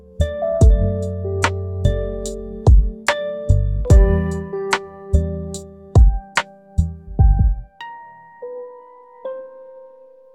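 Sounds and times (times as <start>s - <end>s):
rainy lofi music: 0.0s - 7.8s.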